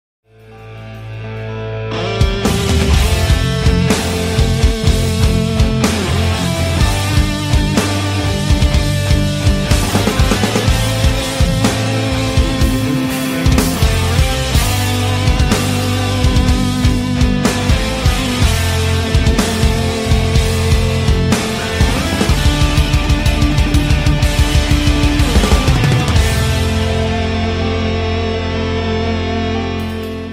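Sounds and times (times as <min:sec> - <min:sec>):
rock cover music: 0:00.3 - 0:30.3.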